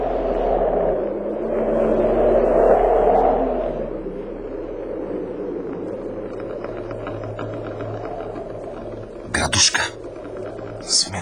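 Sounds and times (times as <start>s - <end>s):
storm wind roaring: 0.0s - 11.2s.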